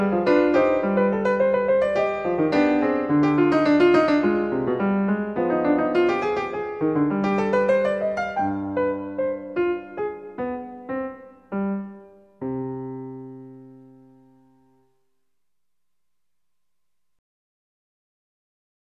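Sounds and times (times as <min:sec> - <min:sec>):
classical keyboard fugue in C minor: 0:00.0 - 0:14.8.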